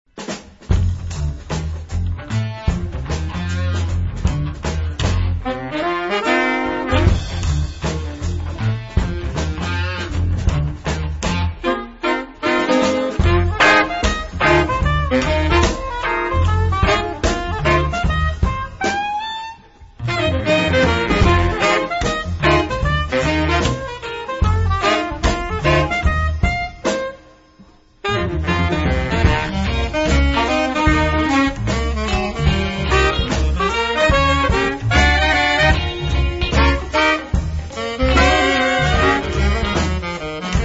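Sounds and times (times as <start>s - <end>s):
funk saxophone: 0.2s - 40.6s.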